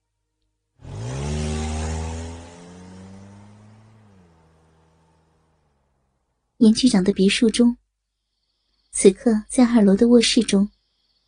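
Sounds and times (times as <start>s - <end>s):
car engine driving off out of a wooded area: 0.8s - 6.6s
speech: 6.6s - 7.8s, 8.9s - 10.8s.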